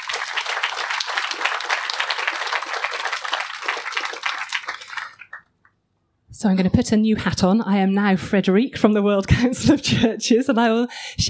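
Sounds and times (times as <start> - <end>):
audience applause for the panel: 0.0 - 5.5
speech: 6.4 - 11.2.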